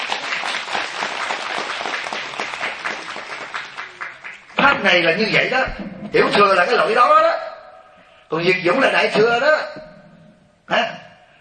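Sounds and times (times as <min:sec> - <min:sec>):
applause: 0:00.0 - 0:04.6
speech: 0:04.8 - 0:07.4, 0:08.3 - 0:09.9, 0:10.7 - 0:11.0.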